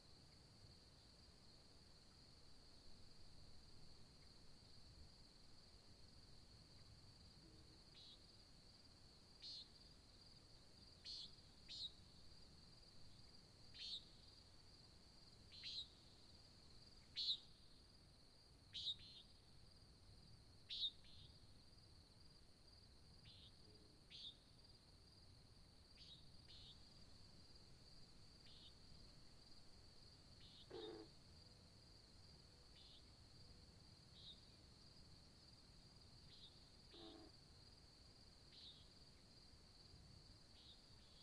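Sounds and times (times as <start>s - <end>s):
cricket chorus: 0.0s - 41.2s
nighthawk calling: 30.6s - 31.1s.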